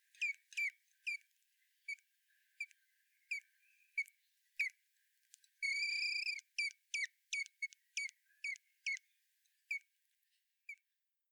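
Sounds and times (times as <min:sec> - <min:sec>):
common blackbird song, Turdus merula: 0:00.0 - 0:09.8.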